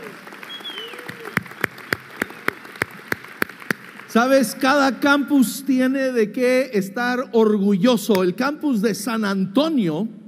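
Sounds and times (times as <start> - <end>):
audience applause: 0.0 - 4.4
speech: 4.2 - 10.2.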